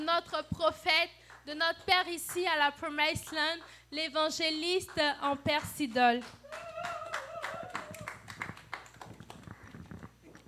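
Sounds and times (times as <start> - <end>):
speech: 0.2 - 6.9
crowd applauding: 6.4 - 10.0.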